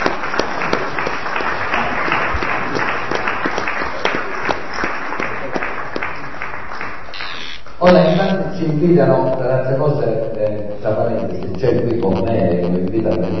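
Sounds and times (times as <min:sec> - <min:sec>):
audience applause: 0:00.0 - 0:08.4
speech: 0:07.8 - 0:13.3.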